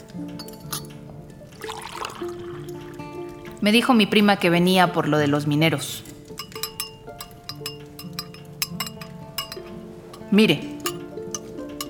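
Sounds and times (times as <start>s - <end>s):
cups and glassware clinking while serving coffee: 0.0s - 3.6s, 6.0s - 11.8s
soft pouring trickle of liquid: 1.5s - 3.4s, 6.3s - 11.8s
speech: 3.6s - 6.1s, 10.3s - 10.7s.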